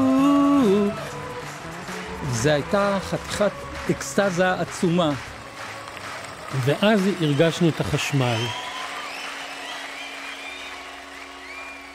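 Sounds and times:
audience applauding: 0:00.0 - 0:11.9
speech: 0:02.4 - 0:05.3, 0:06.5 - 0:08.6
faint whistle-like tones: 0:08.3 - 0:11.9.

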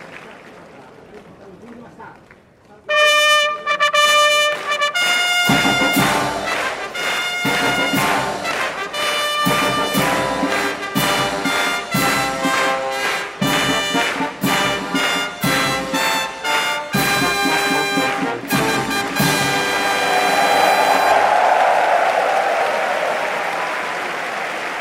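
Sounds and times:
crowd applause at Nakayama Racecourse: 0:00.0 - 0:01.7, 0:04.4 - 0:24.7
military band fanfare at Nakayama Racecourse: 0:02.9 - 0:24.7
crowd cheering at Nakayama Racecourse: 0:04.5 - 0:15.5, 0:17.4 - 0:24.7.

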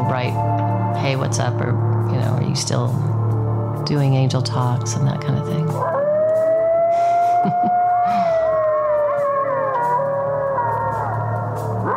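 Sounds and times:
speech: 0:00.1 - 0:03.2, 0:03.8 - 0:06.0, 0:07.4 - 0:08.2
coyotes howling: 0:05.8 - 0:11.9.

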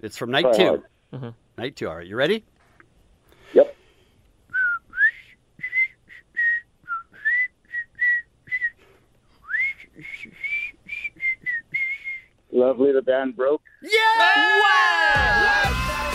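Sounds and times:
speech: 0:00.0 - 0:02.5, 0:12.6 - 0:15.7
person whistling a song melody: 0:04.5 - 0:08.8, 0:09.4 - 0:12.3.

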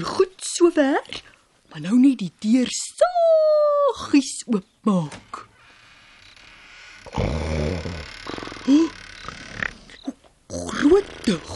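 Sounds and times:
speech: 0:00.8 - 0:05.3, 0:10.6 - 0:11.5
elderly couple snoring: 0:07.0 - 0:10.0.

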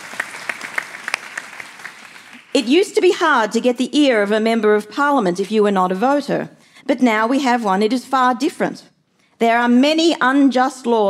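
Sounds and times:
audience applause: 0:00.0 - 0:02.5
speech: 0:02.6 - 0:11.0.

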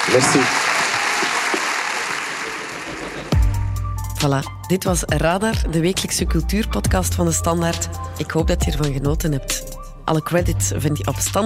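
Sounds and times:
live audience applause: 0:00.0 - 0:03.4
speech: 0:00.1 - 0:00.6, 0:04.2 - 0:11.4.

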